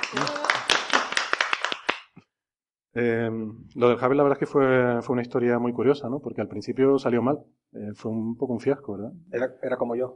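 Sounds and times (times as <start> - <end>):
small group applauding in a studio: 0.0 - 2.3
speech: 3.0 - 10.1.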